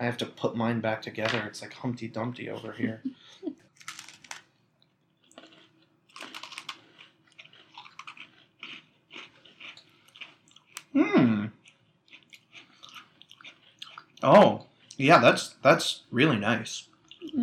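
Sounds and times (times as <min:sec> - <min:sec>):
speech: 0:00.0 - 0:03.4, 0:14.3 - 0:17.4
crunchy chewing of a brownie-flavored Oreo cookie: 0:05.2 - 0:11.0, 0:11.6 - 0:14.3.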